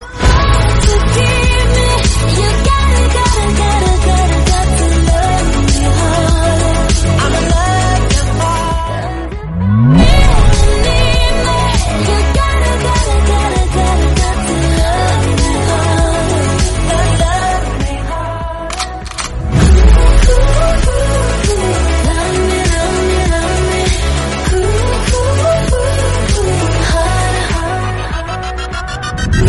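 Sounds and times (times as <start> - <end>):
romantic English music: 0.0 - 29.4.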